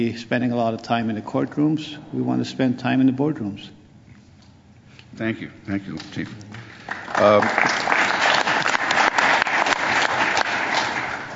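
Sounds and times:
speech: 0.0s - 3.8s, 5.2s - 7.9s
audience applause: 6.6s - 11.3s.

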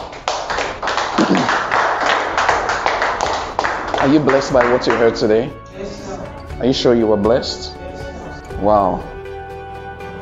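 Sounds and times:
audience clapping: 0.0s - 5.5s
speech: 4.0s - 7.8s, 8.6s - 9.1s.

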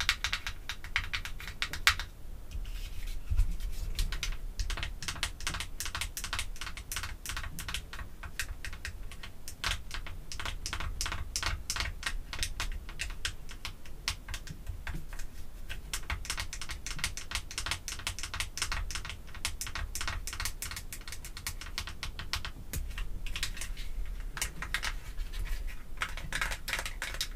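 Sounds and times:
faint low hum: 0.0s - 27.3s
artificial nails tapping on perfume bottles and caps: 4.0s - 27.3s.

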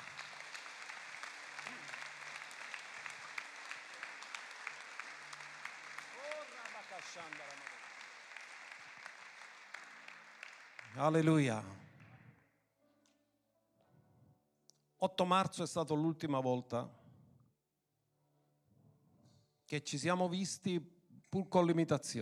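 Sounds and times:
audience applause: 0.0s - 12.3s
speech: 7.1s - 7.7s, 11.0s - 11.8s, 15.0s - 17.0s, 19.7s - 22.2s.

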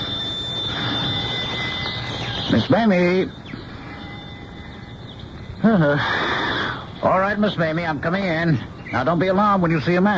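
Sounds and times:
old-fashioned doorbell ringing: 0.0s - 5.9s
speech: 2.5s - 3.4s, 5.6s - 6.3s, 7.0s - 10.1s.

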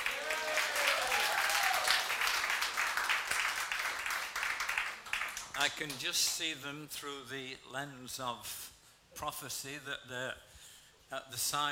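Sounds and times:
audience clapping: 0.0s - 6.4s
speech: 5.6s - 10.5s, 11.1s - 11.6s.

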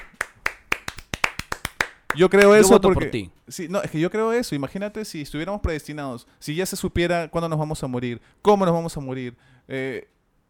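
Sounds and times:
hand clapping: 0.0s - 2.8s
speech: 2.2s - 10.2s.

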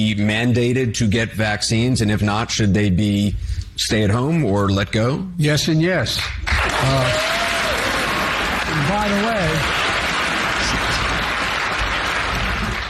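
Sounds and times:
speech: 0.0s - 7.4s, 8.9s - 9.8s
large audience applause: 6.4s - 12.8s.

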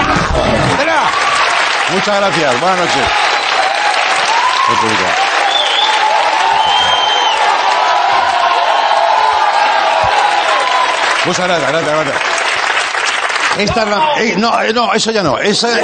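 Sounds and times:
crowd applauding: 0.2s - 14.4s
cheers and whoops: 0.6s - 1.9s, 2.9s - 11.4s
speech: 2.1s - 3.3s, 4.7s - 5.3s, 11.3s - 12.3s, 13.6s - 15.8s.

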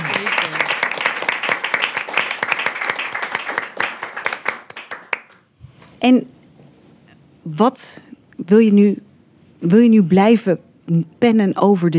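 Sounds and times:
audience applause: 0.0s - 5.4s
speech: 6.0s - 6.4s, 7.4s - 11.9s.

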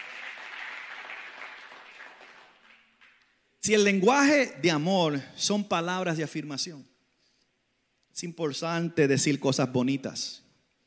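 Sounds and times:
audience applause: 0.0s - 3.2s
speech: 3.6s - 6.9s, 8.2s - 10.4s.

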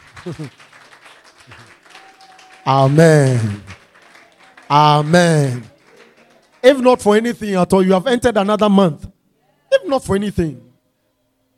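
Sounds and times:
people clapping: 0.0s - 7.4s
speech: 0.2s - 0.6s, 2.6s - 3.7s, 4.7s - 5.7s, 6.6s - 9.1s, 9.8s - 10.6s.

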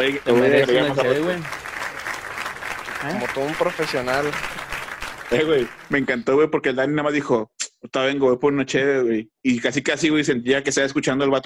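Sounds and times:
speech: 0.0s - 1.6s, 3.0s - 4.6s, 5.3s - 11.4s
audience applause: 0.0s - 6.2s.

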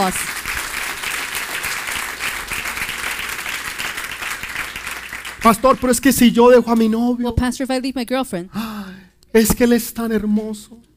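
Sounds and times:
speech: 0.0s - 0.4s, 5.4s - 8.6s, 9.3s - 10.9s
audience applause: 0.0s - 6.1s.

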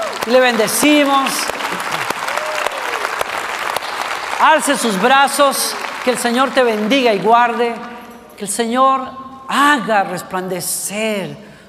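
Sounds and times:
audience applause: 0.0s - 7.3s
speech: 0.2s - 1.5s, 4.4s - 11.5s.

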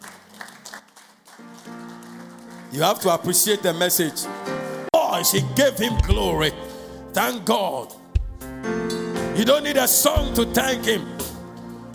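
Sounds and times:
audience clapping: 0.0s - 3.8s
speech: 2.7s - 4.6s, 5.2s - 8.0s, 9.4s - 11.2s.

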